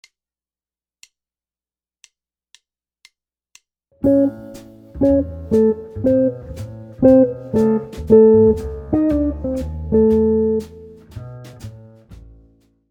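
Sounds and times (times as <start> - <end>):
jazz guitar licks: 4.0 - 12.6.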